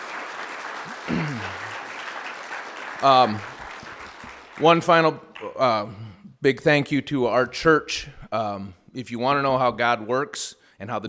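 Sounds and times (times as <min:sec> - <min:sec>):
audience round of applause: 0:00.0 - 0:05.1
speech: 0:03.0 - 0:03.5, 0:04.6 - 0:11.0.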